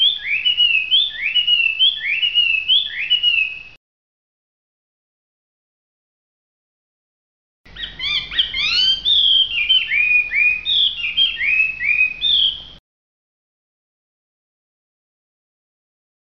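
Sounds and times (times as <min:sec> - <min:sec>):
hwamei song in full song: 0:00.0 - 0:03.8, 0:07.7 - 0:12.8.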